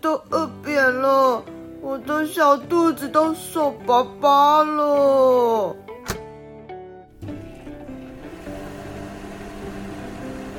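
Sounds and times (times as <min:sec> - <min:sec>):
speech: 0:00.0 - 0:05.8
microwave oven click: 0:05.9 - 0:06.3
microwave oven running: 0:07.2 - 0:10.5.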